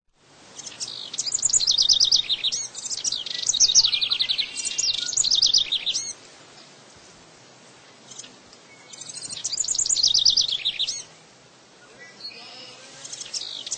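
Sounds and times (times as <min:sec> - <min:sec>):
house wren song: 0:00.2 - 0:06.8, 0:07.7 - 0:13.7.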